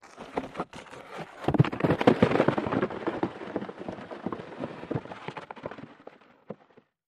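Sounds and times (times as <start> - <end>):
single rock falling in an avalanche: 1.4 - 6.6.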